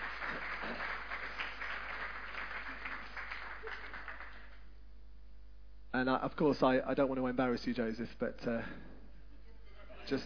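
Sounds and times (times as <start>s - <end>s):
audience applause: 0.0s - 4.7s
speech: 6.0s - 8.9s, 10.1s - 10.2s.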